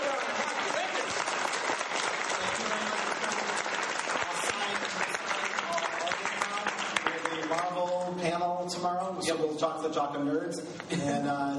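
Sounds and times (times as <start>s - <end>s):
audience applause at a Marvel panel: 0.0s - 8.3s
speech: 9.6s - 11.5s.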